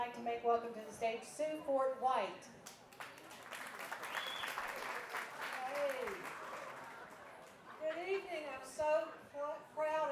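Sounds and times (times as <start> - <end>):
speech: 0.0 - 2.8, 7.9 - 10.1
audience applause at a stage event: 3.0 - 7.6.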